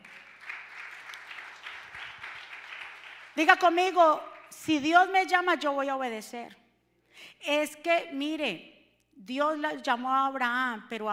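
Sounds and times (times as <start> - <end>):
audience applauding loudly: 0.0 - 3.4
speech: 3.4 - 6.6, 7.4 - 11.1.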